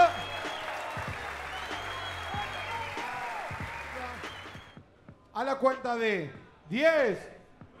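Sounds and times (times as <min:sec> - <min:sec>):
audience applause: 0:00.0 - 0:04.8
speech: 0:05.4 - 0:07.3.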